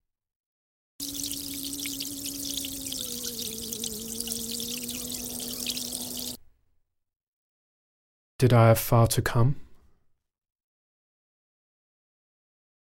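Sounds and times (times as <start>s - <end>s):
tap water running while washing hands: 1.0s - 6.4s
speech: 8.4s - 9.6s.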